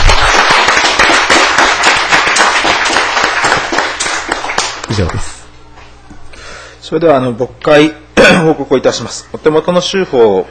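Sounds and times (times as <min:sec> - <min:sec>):
audience applause: 0:00.0 - 0:05.4
speech: 0:05.0 - 0:05.4, 0:06.9 - 0:10.4.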